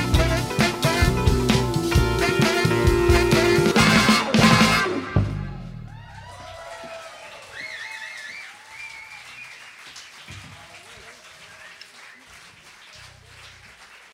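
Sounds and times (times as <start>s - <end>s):
disco bass: 0.0s - 6.6s, 13.0s - 13.8s.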